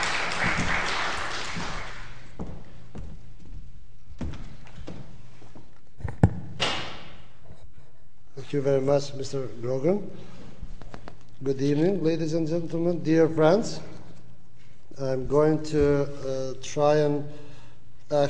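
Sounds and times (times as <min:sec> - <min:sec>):
audience applause: 0:00.0 - 0:02.3
speech: 0:08.5 - 0:10.3, 0:11.4 - 0:13.9, 0:15.0 - 0:17.5.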